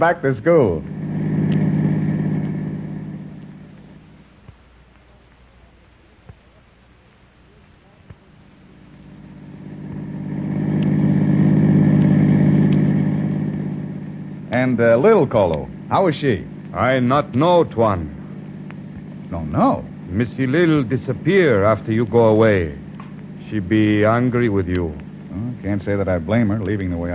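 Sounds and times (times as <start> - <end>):
speech: 0.0 - 0.9, 14.6 - 18.2, 19.3 - 22.8, 23.5 - 27.1
car driving off engine rumble: 0.8 - 4.4, 8.5 - 27.1.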